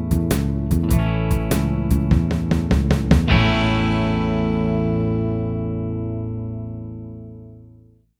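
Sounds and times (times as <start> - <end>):
blues backing on guitar: 0.0 - 7.8.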